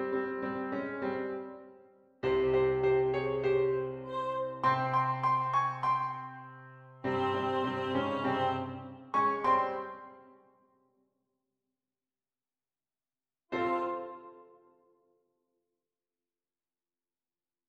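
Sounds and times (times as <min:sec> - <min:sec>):
instrumental music: 0:00.0 - 0:10.6, 0:13.5 - 0:14.8.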